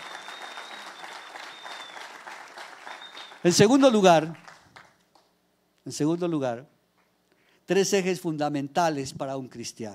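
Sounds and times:
faint high whistle-like tone: 0.0s - 2.1s, 2.9s - 3.4s
audience applause: 0.0s - 4.9s
speech: 3.4s - 4.4s, 5.8s - 6.7s, 7.7s - 9.9s.

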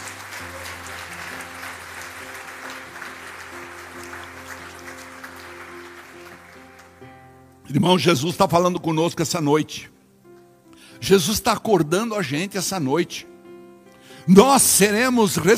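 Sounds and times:
audience applauding: 0.0s - 7.2s
speech: 7.7s - 10.0s, 11.0s - 13.3s, 14.3s - 15.5s.

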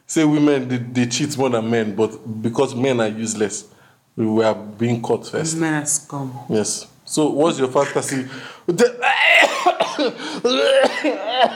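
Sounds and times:
speech: 0.1s - 11.5s
person coughing: 9.0s - 11.5s.

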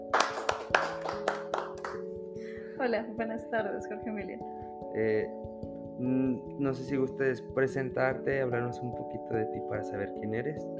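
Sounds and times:
rhythmic applause: 0.0s - 2.1s
speech: 2.8s - 5.4s, 6.0s - 10.7s.

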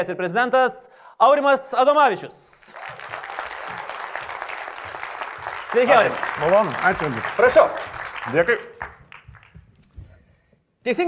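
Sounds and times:
speech: 0.0s - 3.1s, 5.7s - 9.0s, 10.8s - 11.0s
audience applause welcoming a software company's founder onto the stage: 2.7s - 9.7s.

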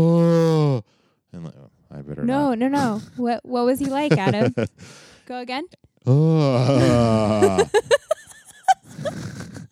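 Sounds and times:
person imitating urgently bawling cow: 0.0s - 0.8s, 6.1s - 7.5s
speech: 2.3s - 8.0s
laughter: 3.8s - 4.8s, 6.6s - 9.7s.

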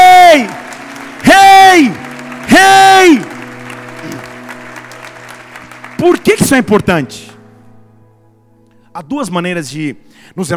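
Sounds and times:
audience applauding: 0.0s - 7.4s
speech: 6.2s - 7.3s, 9.0s - 10.5s.

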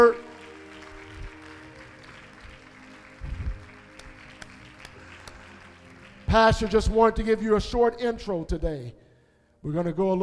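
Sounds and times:
audience clapping hands: 0.0s - 7.4s
speech: 6.3s - 9.0s, 9.6s - 10.2s.

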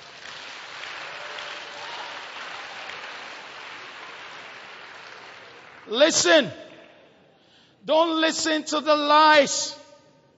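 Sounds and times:
audience applause: 0.0s - 5.9s
speech: 5.9s - 6.6s, 7.9s - 9.8s.

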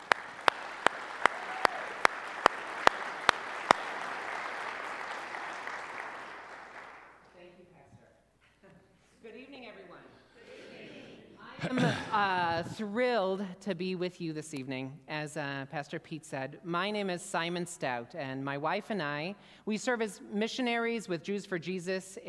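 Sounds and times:
audience applause for guest: 0.0s - 7.2s
speech: 11.6s - 22.2s.

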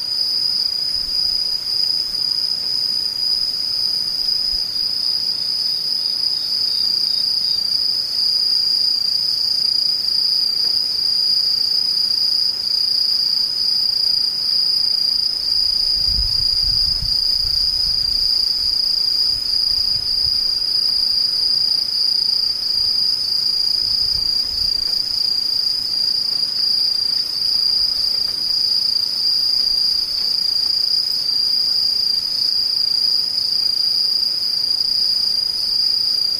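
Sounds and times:
crickets trilling: 0.0s - 36.3s.

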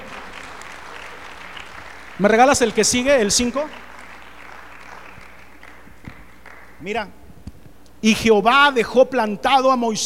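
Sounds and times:
audience applause: 0.0s - 6.8s
speech: 2.2s - 3.9s, 6.8s - 7.2s, 8.0s - 10.0s.

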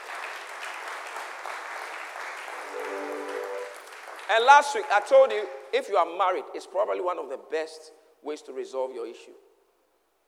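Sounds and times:
crowd clapping: 0.0s - 5.2s
speech: 4.3s - 9.4s.

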